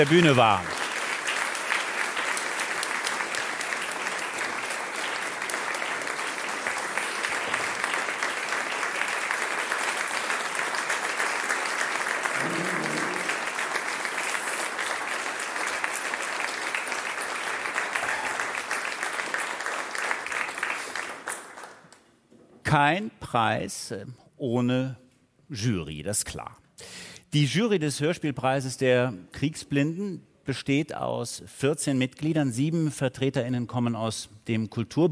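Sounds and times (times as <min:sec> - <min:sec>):
speech: 0:00.0 - 0:00.8, 0:22.7 - 0:26.6, 0:27.3 - 0:35.0
audience applause: 0:00.0 - 0:21.8.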